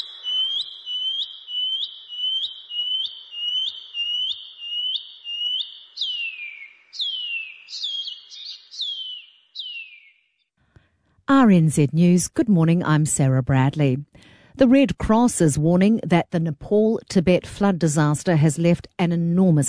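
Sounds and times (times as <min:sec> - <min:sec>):
shining cuckoo calling: 0:00.0 - 0:10.3
speech: 0:11.4 - 0:19.6.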